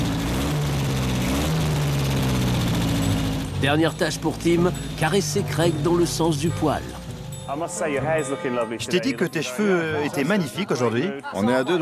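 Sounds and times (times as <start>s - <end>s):
car engine starting and running: 0.0s - 7.8s
speech: 3.6s - 11.8s.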